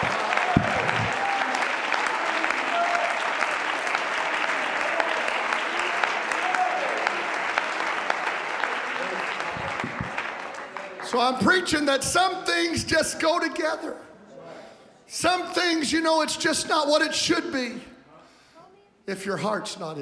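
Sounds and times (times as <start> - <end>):
audience clapping: 0.0 - 11.9
speech: 11.1 - 14.0, 15.2 - 17.9, 19.1 - 20.0.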